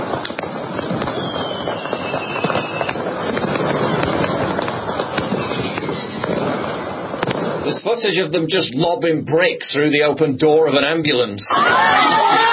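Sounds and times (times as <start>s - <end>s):
fireworks exploding in street riots: 0.0s - 12.5s
speech: 7.9s - 12.4s
roar of street riots: 11.5s - 12.5s.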